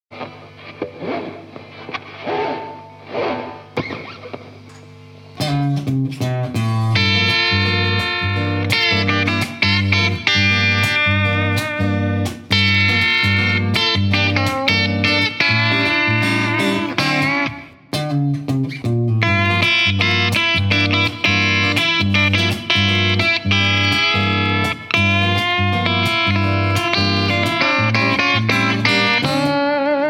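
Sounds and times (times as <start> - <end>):
detuned Telecaster electric guitar: 0.1 - 30.0.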